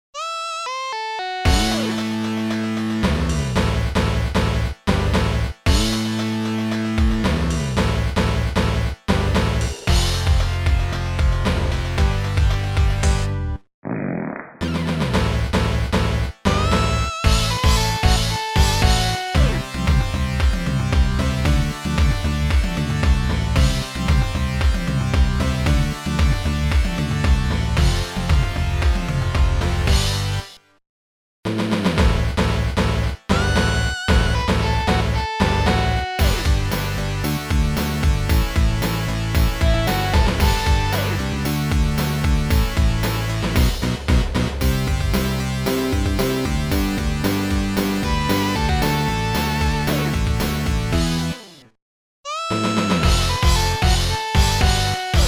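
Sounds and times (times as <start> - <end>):
Sega Genesis instrumental remix: 0.2 - 13.5, 14.6 - 30.6, 31.6 - 51.7, 52.3 - 55.2.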